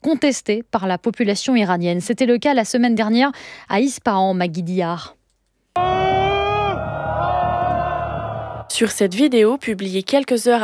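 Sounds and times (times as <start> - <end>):
speech: 0.1 - 5.2, 5.8 - 6.2, 8.8 - 10.6
dense crowd shouting together: 5.8 - 8.7.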